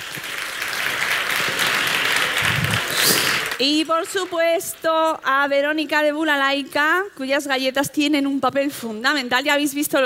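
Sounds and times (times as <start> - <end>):
audience applause: 0.0 - 4.8
speech: 3.6 - 10.0.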